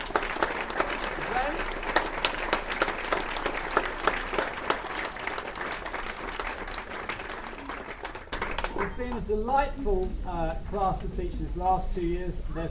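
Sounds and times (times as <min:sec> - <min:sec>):
audience applause: 0:00.0 - 0:09.2
speech: 0:09.2 - 0:12.6.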